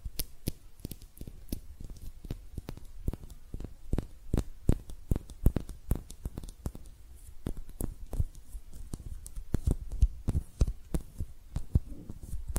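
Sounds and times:
hand taps and clicks: 0:00.0 - 0:12.5
soft rustling and tearing-like scrapes: 0:10.3 - 0:12.5.

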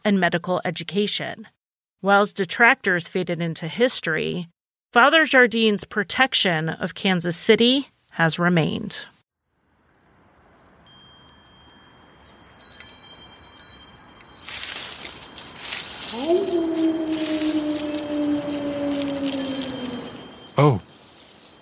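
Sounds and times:
speech: 0:00.0 - 0:09.1, 0:20.6 - 0:20.8
wind chimes: 0:10.2 - 0:21.5.

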